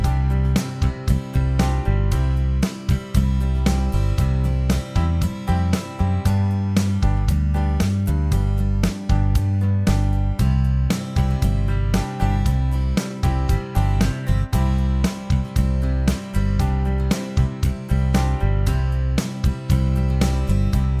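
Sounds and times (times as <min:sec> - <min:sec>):
guitar backing track: 0:00.0 - 0:20.9.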